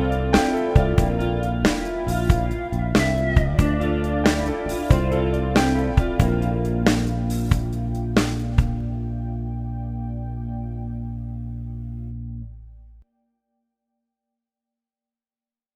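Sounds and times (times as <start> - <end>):
moody country rock music: 0.0 - 11.0.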